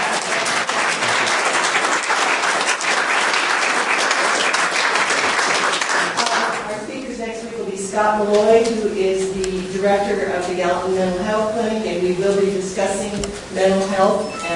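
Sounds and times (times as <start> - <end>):
audience applause: 0.0 - 6.6
speech: 8.0 - 14.5.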